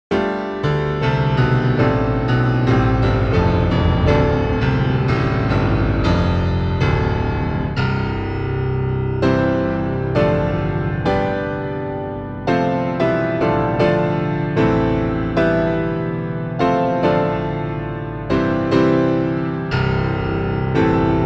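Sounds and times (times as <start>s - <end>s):
piano: 0.1s - 21.2s
growly bass: 3.0s - 8.5s.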